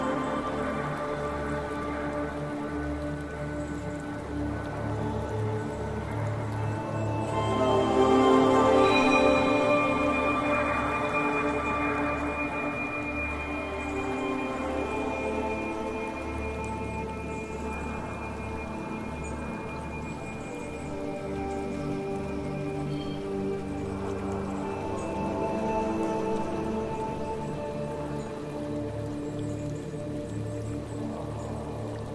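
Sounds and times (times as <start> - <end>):
magical forest ambience: 0.0 - 32.1
meditative flute music: 0.0 - 32.1.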